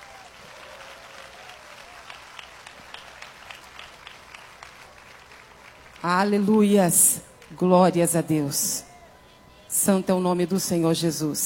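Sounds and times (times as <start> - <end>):
applause: 0.0 - 9.4
speech: 6.0 - 8.9, 9.8 - 11.4.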